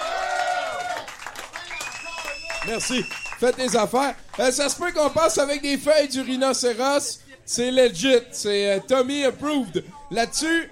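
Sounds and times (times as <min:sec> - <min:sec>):
audience applause for a graphic designer who paints live at the event: 0:00.0 - 0:05.1
speech: 0:02.6 - 0:10.7.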